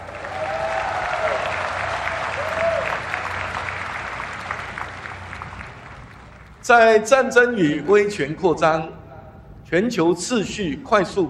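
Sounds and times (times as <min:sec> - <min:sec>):
sustained applause from a large audience: 0:00.0 - 0:06.6
speech: 0:06.7 - 0:09.0, 0:09.7 - 0:11.2.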